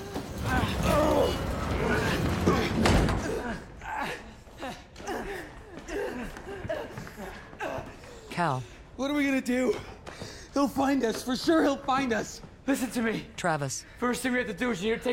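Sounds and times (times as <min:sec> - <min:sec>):
old jukebox dragged to block door: 0:00.0 - 0:03.3
speech: 0:08.4 - 0:09.9, 0:10.6 - 0:15.1.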